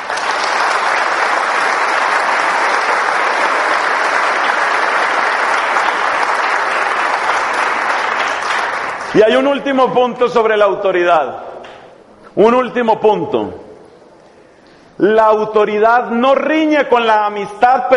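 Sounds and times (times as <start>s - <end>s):
crowd clapping: 0.0s - 9.8s
speech: 9.2s - 11.4s, 12.4s - 13.6s, 15.0s - 17.9s.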